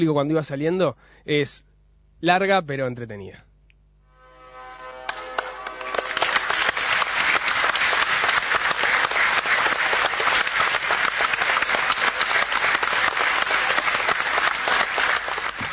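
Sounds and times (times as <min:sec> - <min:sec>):
speech: 0:00.0 - 0:03.5
audience applause: 0:05.0 - 0:15.7.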